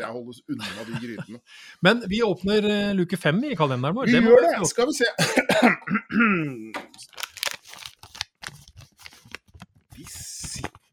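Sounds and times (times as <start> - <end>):
speech: 0.0 - 7.2
laughter: 0.5 - 1.4
security tape torn opening calendar door: 7.0 - 10.9.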